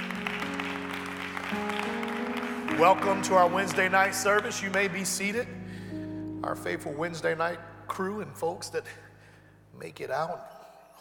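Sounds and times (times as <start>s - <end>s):
audience hand clapping: 0.0s - 5.3s
speech: 2.8s - 5.6s, 6.4s - 9.0s, 9.8s - 10.5s.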